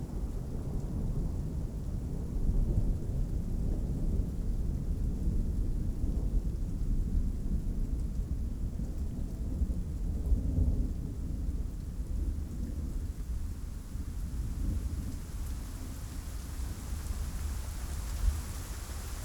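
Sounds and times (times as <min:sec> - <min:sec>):
strong monotone rain: 0:00.0 - 0:19.2.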